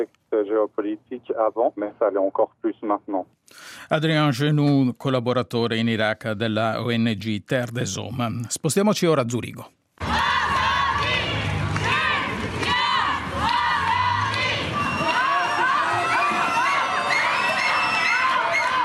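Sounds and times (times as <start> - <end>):
speech: 0.0 - 9.8
crowd at unauthorized protest shouting and yelling: 10.0 - 18.8.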